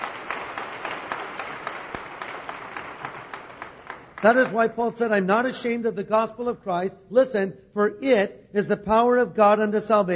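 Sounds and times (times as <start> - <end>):
audience applause in church: 0.0 - 4.7
speech: 4.2 - 10.1.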